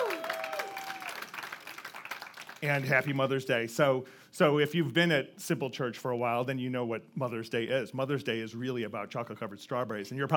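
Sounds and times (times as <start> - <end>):
audience applause: 0.0 - 3.1
speech: 2.6 - 10.3.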